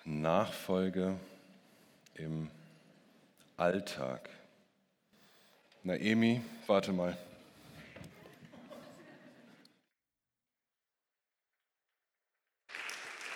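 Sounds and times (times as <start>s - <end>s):
speech: 0.2s - 1.3s, 2.2s - 2.6s, 3.6s - 4.4s, 5.8s - 7.3s
laughter: 8.1s - 9.8s
audience applause: 12.7s - 13.3s.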